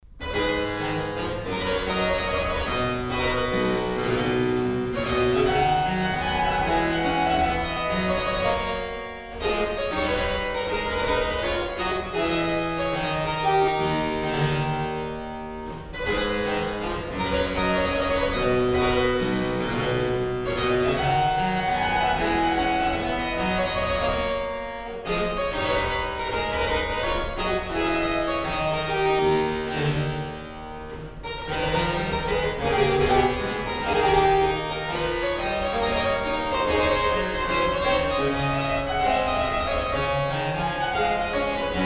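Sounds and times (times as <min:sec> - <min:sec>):
baroque dance piece: 0:00.0 - 0:41.8.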